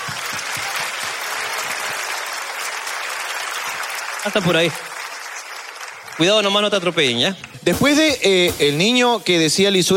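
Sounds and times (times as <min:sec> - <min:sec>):
audience applause: 0:00.0 - 0:07.7
speech: 0:04.2 - 0:04.9, 0:06.2 - 0:09.9.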